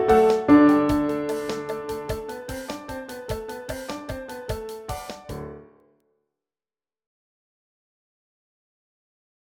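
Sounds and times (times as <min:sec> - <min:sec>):
musical accompaniment: 0:00.0 - 0:05.8.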